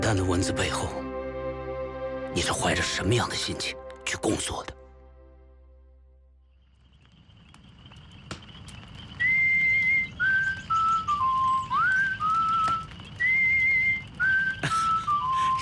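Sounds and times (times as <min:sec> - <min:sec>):
speech: 0:00.1 - 0:01.0, 0:02.3 - 0:04.8
person whistling a song melody: 0:09.2 - 0:15.5.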